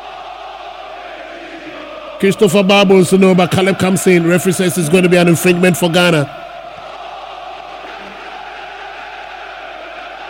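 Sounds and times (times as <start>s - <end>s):
large stadium crowd roaring and cheering, celebrating a goal: 0.0s - 10.2s
speech: 2.2s - 6.4s.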